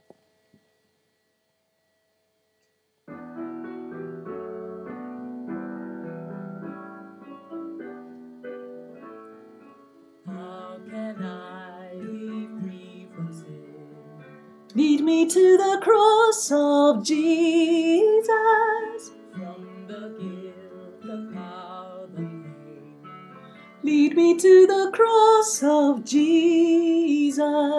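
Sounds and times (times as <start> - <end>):
soprano singing: 10.2 - 27.7.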